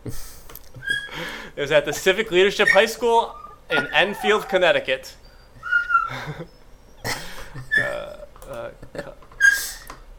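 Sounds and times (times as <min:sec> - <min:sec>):
dog whining: 0:00.8 - 0:01.2, 0:01.8 - 0:07.0, 0:07.6 - 0:08.2
speech: 0:01.6 - 0:05.2, 0:06.1 - 0:06.6.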